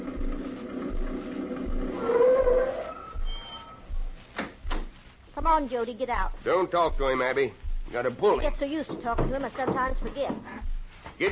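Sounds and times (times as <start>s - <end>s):
old truck engine chugging as it pulls up: 0.0s - 2.9s
speech: 5.5s - 10.6s.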